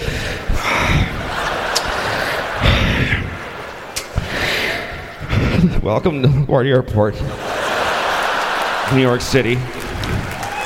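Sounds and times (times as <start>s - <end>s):
voice imitating an airline pilot panting out of breath: 0.0s - 1.3s, 2.0s - 3.4s, 4.1s - 5.8s
laughter: 0.0s - 6.5s, 7.2s - 10.6s
speech: 5.9s - 7.4s, 8.9s - 9.8s.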